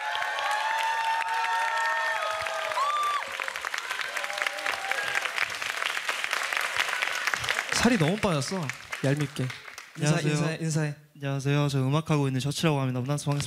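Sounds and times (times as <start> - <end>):
brief high voiced cheers: 0.0 - 8.2
concert audience applause as a guest singer is brought on stage: 0.0 - 10.4
speech: 7.8 - 13.4.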